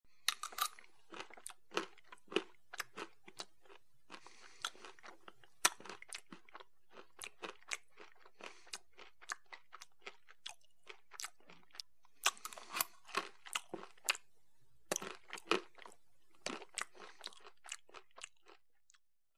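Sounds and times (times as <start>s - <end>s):
chewing: 0.2s - 14.3s, 14.9s - 19.0s
fork scraping while eating: 0.3s - 0.9s, 12.3s - 13.1s.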